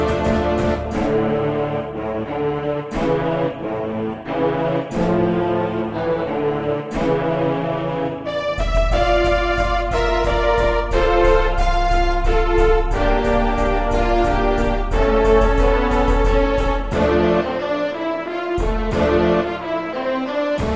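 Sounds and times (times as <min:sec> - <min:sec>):
synthesized brass: 0:00.0 - 0:20.7
synthesized choir: 0:00.0 - 0:20.7
synthesized flute: 0:00.0 - 0:20.7
synthesized strings: 0:00.0 - 0:20.7.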